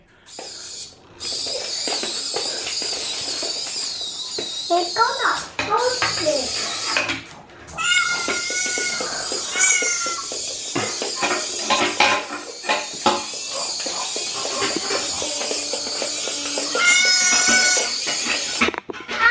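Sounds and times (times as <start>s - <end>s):
clattering noise: 0.3s - 19.2s
cat meowing: 7.7s - 10.3s, 14.9s - 18.1s.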